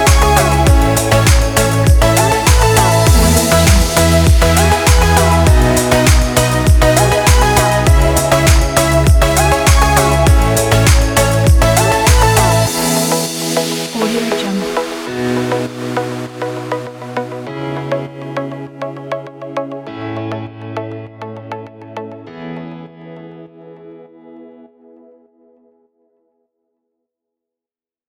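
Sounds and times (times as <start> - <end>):
uplifting house EDM: 0.0 - 22.2.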